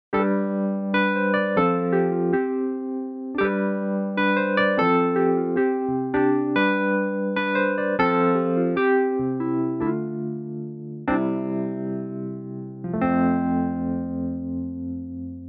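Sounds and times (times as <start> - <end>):
Kontakt 7 Wurlitzer electric piano: 0.1 - 15.4.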